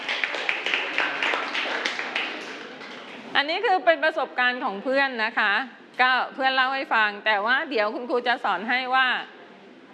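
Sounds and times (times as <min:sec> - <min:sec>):
classroom of students clapping for a classmate: 0:00.0 - 0:03.2
speech: 0:03.4 - 0:09.4.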